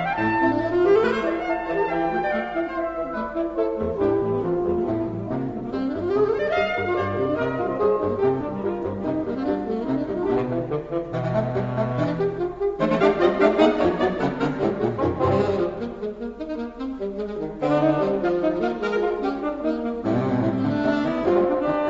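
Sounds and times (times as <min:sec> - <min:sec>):
saxophone quartet playing a finale: 0:00.0 - 0:21.8.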